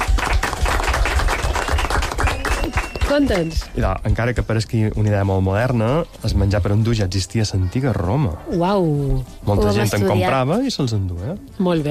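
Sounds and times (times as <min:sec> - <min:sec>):
a few people clapping after a correct quiz answer: 0:00.0 - 0:03.9
speech: 0:03.1 - 0:11.8.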